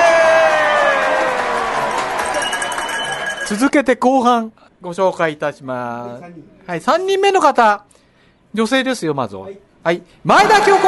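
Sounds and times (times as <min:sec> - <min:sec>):
audience applause and cheering: 0:00.0 - 0:03.5
speech: 0:03.5 - 0:10.8.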